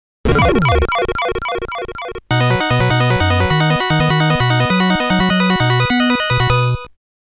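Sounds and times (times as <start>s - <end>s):
game over jingle: 0.3s - 6.9s.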